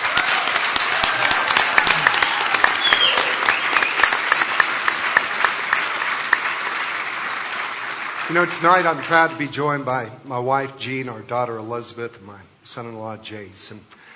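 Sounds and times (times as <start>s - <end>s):
crowd clapping: 0.0s - 10.1s
speech: 8.3s - 14.0s.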